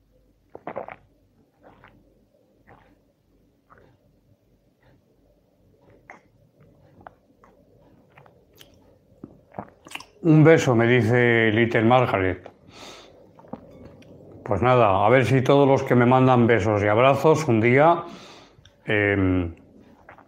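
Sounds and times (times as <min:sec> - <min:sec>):
low rumbling background: 0:00.0 - 0:20.2
person sipping a soft drink: 0:00.5 - 0:04.1, 0:05.9 - 0:10.2, 0:12.3 - 0:14.5, 0:19.6 - 0:20.2
speech: 0:10.2 - 0:12.5, 0:14.5 - 0:18.3, 0:18.9 - 0:19.6.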